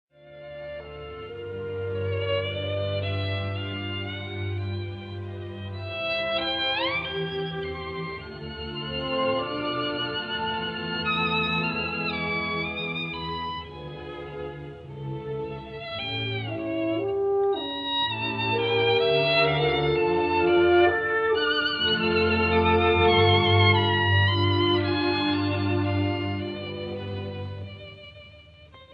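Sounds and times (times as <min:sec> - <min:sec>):
violin concerto slow movement in D major: 0:00.2 - 0:28.9.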